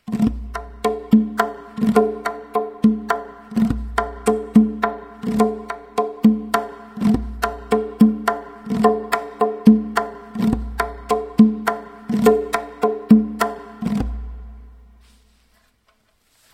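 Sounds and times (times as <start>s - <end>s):
tonbak drum: 0.0s - 15.0s.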